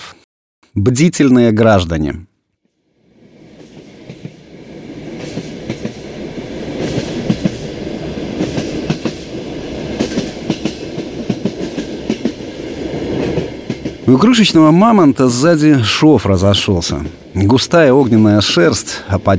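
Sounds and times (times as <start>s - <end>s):
speech: 0.8s - 2.3s, 14.1s - 19.3s
moving train clattering on rails: 3.6s - 18.6s.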